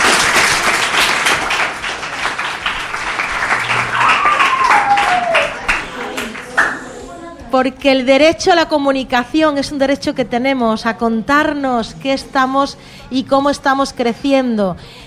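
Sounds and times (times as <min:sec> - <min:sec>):
audience applause: 0:00.0 - 0:07.0
scattered cheering voices: 0:03.4 - 0:07.2
brief falling whistle: 0:03.7 - 0:05.7
speech: 0:07.6 - 0:15.0.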